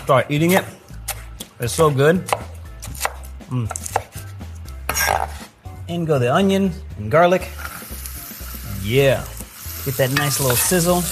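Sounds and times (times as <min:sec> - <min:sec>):
speech: 0:00.1 - 0:00.8, 0:01.6 - 0:02.4, 0:03.5 - 0:04.0, 0:05.9 - 0:07.6, 0:08.8 - 0:11.1
knife chopping bacon on cutting board: 0:02.1 - 0:04.3, 0:04.9 - 0:05.5.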